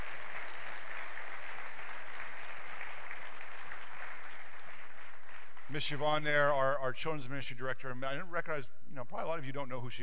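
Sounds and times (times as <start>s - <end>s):
church congregation applauding the children's ministry director: 0.0s - 6.4s
speech: 5.7s - 10.0s.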